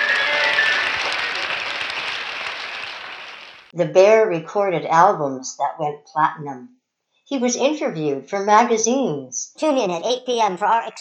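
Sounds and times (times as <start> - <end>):
large crowd wild applause: 0.0 - 3.7
speech: 3.8 - 10.9.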